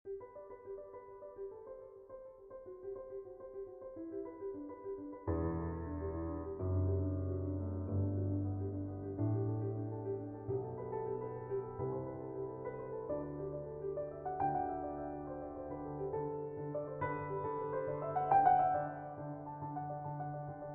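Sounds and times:
classical keyboard invention in G major: 0.1s - 20.7s.

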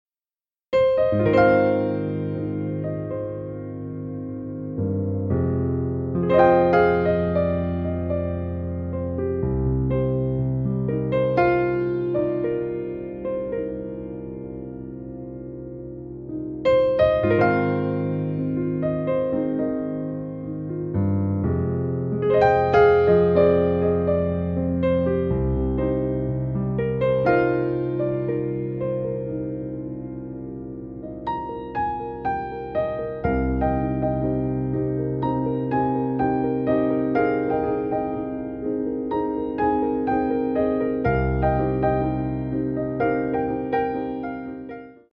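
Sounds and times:
piano music: 0.7s - 45.1s.

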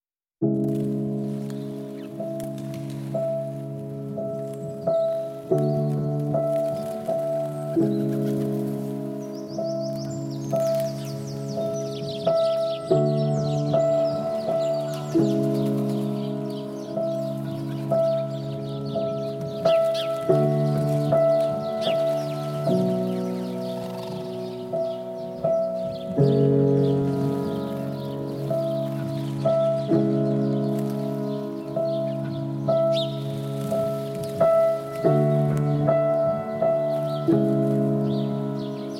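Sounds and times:
piano: 0.4s - 38.9s
wings flapping: 0.5s - 12.7s, 13.6s - 25.0s, 26.2s - 32.2s, 32.9s - 35.8s.

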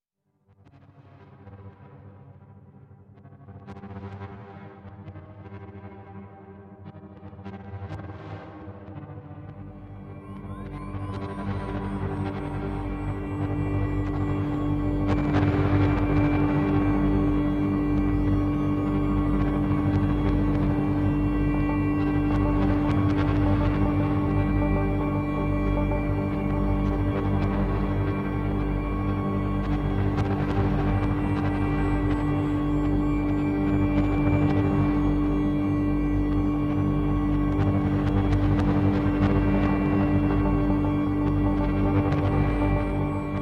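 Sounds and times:
instrumental music: 9.9s - 43.4s.

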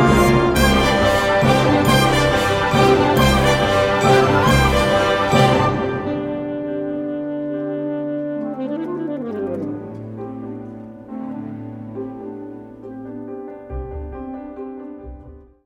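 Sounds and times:
alto saxophone: 0.0s - 11.8s
orchestra: 0.0s - 15.6s.

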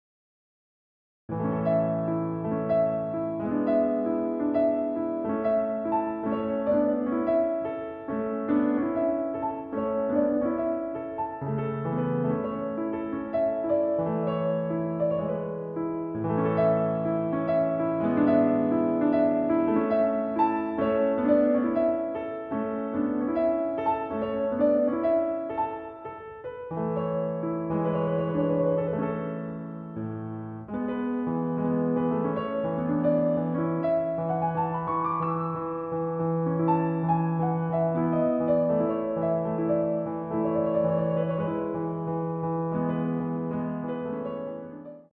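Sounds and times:
solo piano arrangement of a piano concerto in D major: 1.3s - 45.1s.

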